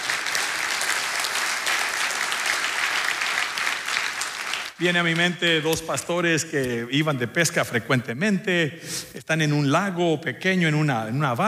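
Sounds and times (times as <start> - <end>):
audience applauding: 0.0 - 5.1
speech: 4.8 - 11.4.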